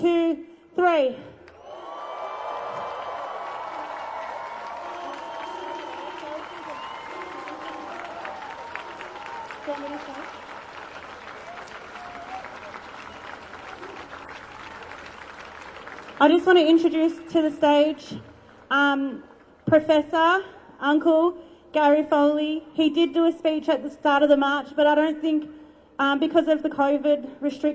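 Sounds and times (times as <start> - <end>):
speech: 0.4 - 1.3, 16.2 - 27.7
crowd cheering: 1.5 - 16.9.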